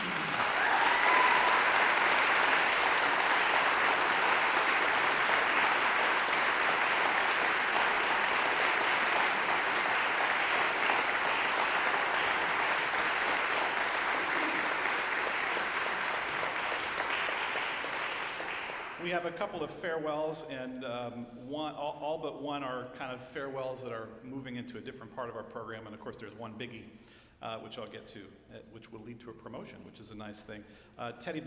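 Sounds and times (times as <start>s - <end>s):
audience applause: 0.0s - 19.1s
speech: 19.1s - 31.4s.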